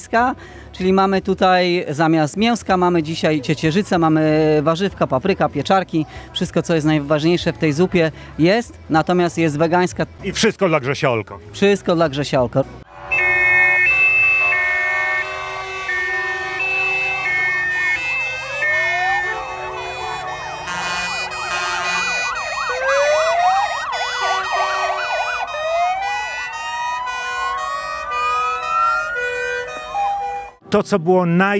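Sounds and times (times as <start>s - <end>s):
speech: 0.0s - 12.8s, 30.7s - 31.5s
several emergency vehicle sirens wailing together: 12.9s - 30.6s.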